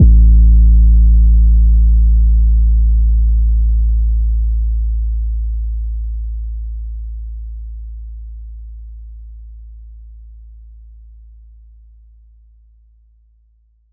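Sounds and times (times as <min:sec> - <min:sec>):
phonk 808 kick drum one-shot: 0:00.0 - 0:10.6.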